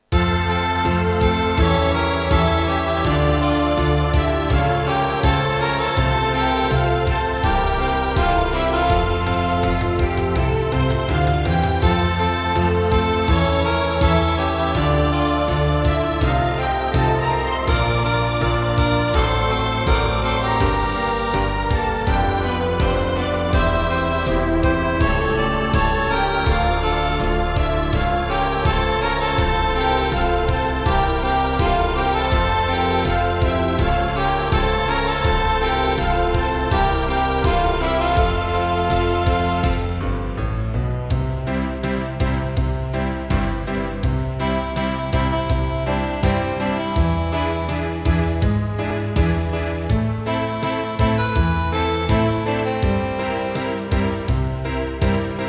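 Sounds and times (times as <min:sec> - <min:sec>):
circus song backing track: 0:00.0 - 0:55.4.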